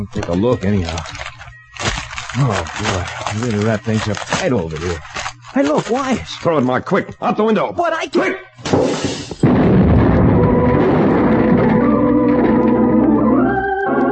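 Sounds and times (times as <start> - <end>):
speech: 0.0 - 1.2, 2.3 - 9.3
heavy rumble after a bomb explosion: 9.4 - 13.2
homemade bomb exploding beside a train: 9.4 - 14.0.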